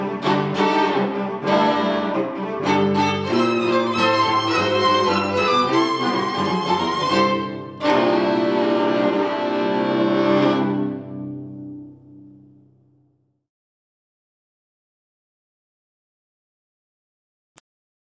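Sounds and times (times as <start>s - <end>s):
string quartet: 0.0s - 12.2s.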